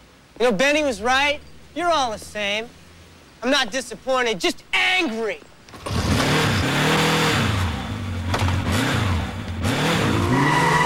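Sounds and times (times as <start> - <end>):
speech: 0.4 - 2.8, 3.4 - 5.8
motorbike engine roaring and pulling away: 5.8 - 10.8.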